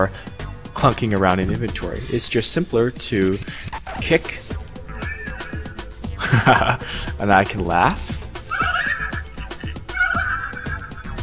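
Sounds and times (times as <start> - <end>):
speech: 0.0 - 4.5, 6.3 - 8.2
low rhythmic thumps: 0.0 - 11.2
pony whinnying in a video game: 4.8 - 6.0, 8.4 - 11.2
laughter: 4.9 - 7.5, 8.4 - 11.2.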